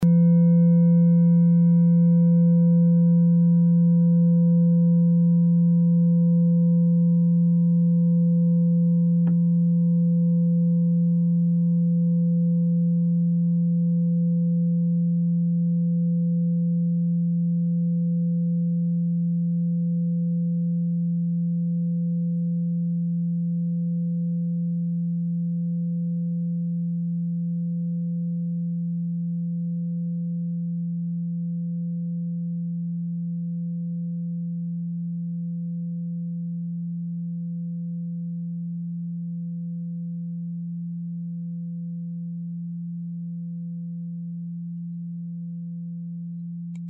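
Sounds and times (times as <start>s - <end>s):
Tibetan singing bowl: 0.0s - 46.8s.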